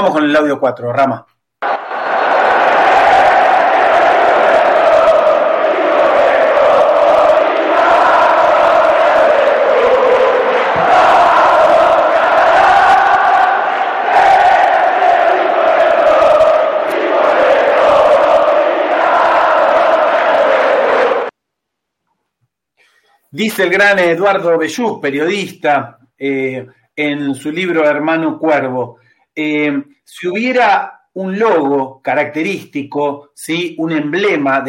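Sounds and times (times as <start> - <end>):
speech: 0.0 - 1.8, 23.4 - 34.6
large crowd of football fans singing a chant: 1.6 - 21.3.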